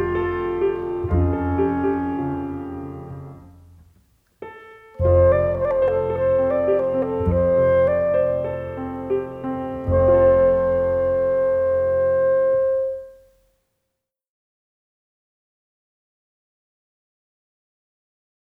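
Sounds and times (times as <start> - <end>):
instrumental accompaniment: 0.0 - 13.4.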